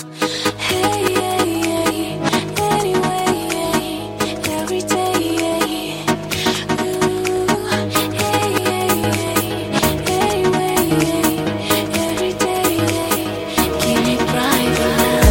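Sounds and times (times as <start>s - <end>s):
English song ringtone: 0.1s - 15.3s.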